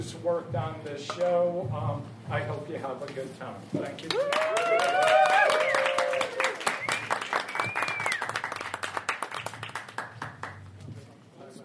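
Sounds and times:
speech: 0.0 - 5.4
audience applause at a live show: 4.1 - 10.6.

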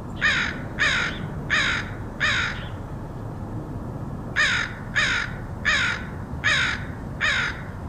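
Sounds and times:
crow giving harsh caws: 0.2 - 2.8, 4.4 - 7.8.

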